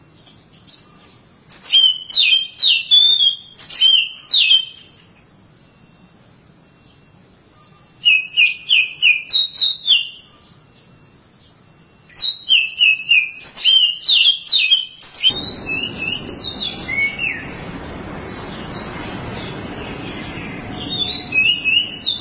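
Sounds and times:
Oriental magpie-robin whistling: 1.5 - 5.0, 7.6 - 10.3, 12.1 - 22.2.

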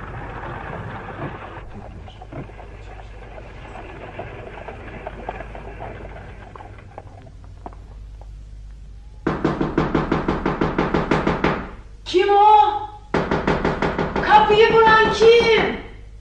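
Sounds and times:
rapid knocking on a house door: 9.3 - 11.8, 13.1 - 15.6
person calling out: 12.1 - 13.0, 14.2 - 15.9.

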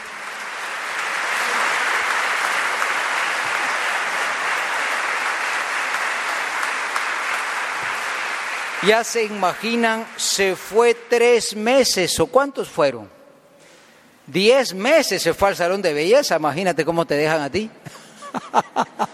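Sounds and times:
audience applause: 0.0 - 10.9
speech: 8.8 - 13.2, 14.3 - 19.1
laughter: 17.8 - 19.1.

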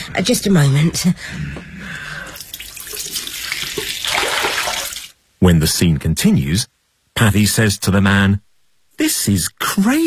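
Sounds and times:
speech: 0.1 - 1.7, 5.5 - 8.4, 9.0 - 10.0
tap water running into a glass: 2.4 - 5.1.

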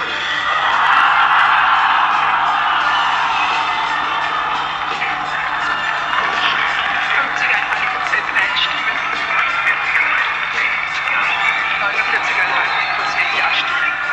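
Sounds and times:
large crowd cheering and screaming at result: 0.0 - 14.1.

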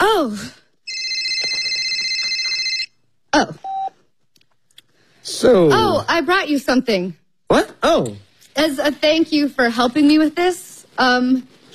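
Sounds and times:
phone ringing: 0.9 - 3.0
speech: 3.4 - 3.7, 5.2 - 11.7.

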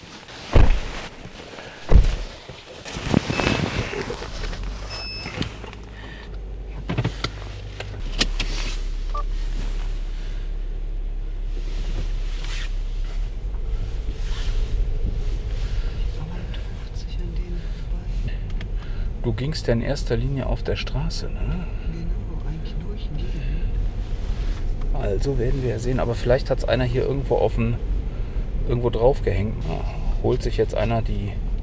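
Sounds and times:
clunks and rustles inside a car: 0.0 - 10.4, 11.4 - 19.2
car engine drone inside a moving car: 0.0 - 31.6
road rumble inside a moving car: 0.0 - 31.6
speech: 19.4 - 21.8, 25.1 - 27.9, 28.7 - 31.4.

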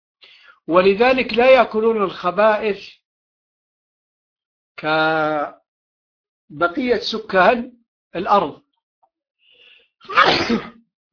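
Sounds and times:
speech: 0.6 - 3.0, 4.8 - 5.6, 6.5 - 8.6, 10.0 - 10.8
sneeze: 10.0 - 10.8.

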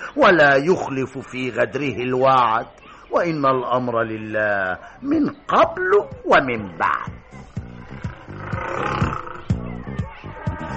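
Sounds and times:
speech: 0.2 - 7.4
tiger roaring: 7.8 - 9.6.

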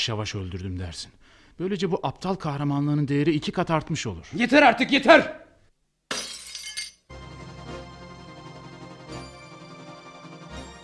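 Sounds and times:
speech: 0.0 - 5.4
glassware in a home smashing: 6.1 - 7.1
scattered glass pieces tinkling: 6.1 - 7.1.

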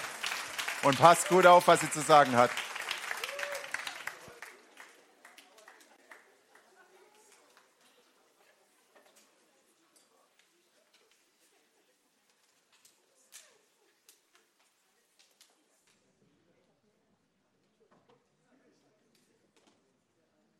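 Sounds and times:
audience applause: 0.0 - 7.8
speech: 0.8 - 2.7.

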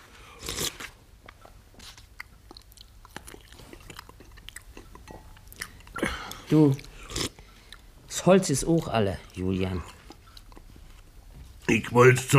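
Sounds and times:
someone chewing while eating a meal: 0.2 - 7.9, 8.8 - 11.2
speech: 6.5 - 6.9, 8.2 - 10.0, 11.7 - 12.3.

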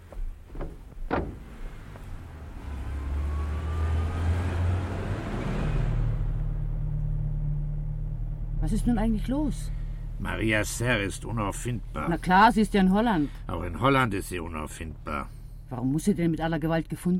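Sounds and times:
car door thumps and clicks: 0.0 - 2.2
car engine rumble pulling away: 0.0 - 17.1
speech: 8.7 - 17.1.

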